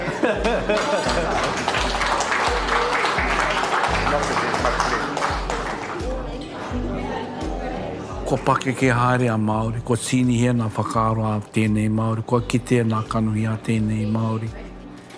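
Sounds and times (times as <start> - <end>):
laughter: 0.0 - 7.7
speech: 0.2 - 1.6, 8.3 - 14.6
audience clapping and applause: 0.4 - 6.4.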